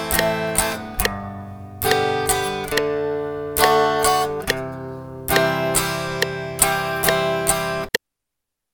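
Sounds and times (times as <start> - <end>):
song bass note on guitar: 0.0 - 7.9.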